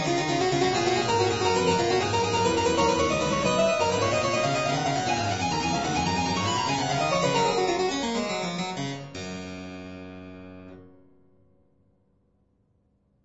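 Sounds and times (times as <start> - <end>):
harpsichord piece for two manuals: 0.0 - 10.8.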